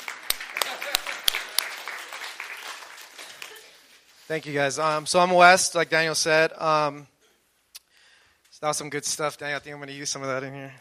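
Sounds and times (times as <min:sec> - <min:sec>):
audience clapping: 0:00.0 - 0:04.1
speech: 0:04.3 - 0:07.1, 0:08.6 - 0:10.8.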